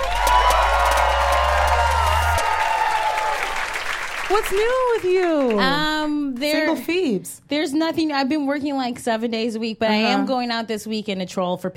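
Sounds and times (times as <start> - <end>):
live audience cheering and clapping: 0.0 - 6.8
speech: 4.3 - 11.7.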